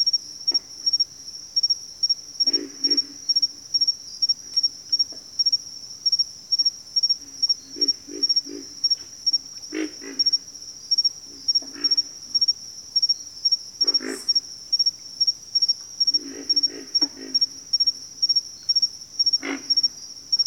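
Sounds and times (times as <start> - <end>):
insect trill: 0.0 - 20.4
pig frogs grunting: 2.4 - 3.6, 7.2 - 12.5, 13.8 - 14.5, 16.1 - 18.0, 19.3 - 20.4.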